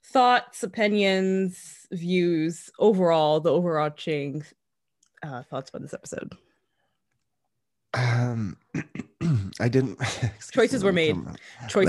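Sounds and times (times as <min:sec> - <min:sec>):
speech: 0:00.1 - 0:04.6, 0:05.2 - 0:06.4, 0:07.9 - 0:11.8
throat clearing: 0:08.0 - 0:09.6.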